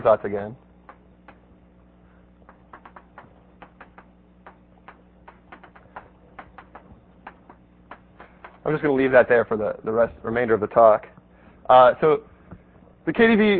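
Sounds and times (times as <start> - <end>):
speech: 0.0 - 0.6, 8.7 - 11.1, 11.7 - 12.3, 13.0 - 13.5
writing on a board during a mathematics lecture: 0.8 - 1.5, 2.4 - 8.8.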